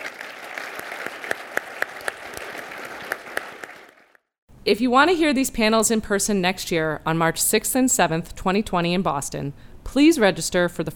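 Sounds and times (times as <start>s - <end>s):
applause: 0.0s - 4.3s
speech: 4.7s - 10.9s.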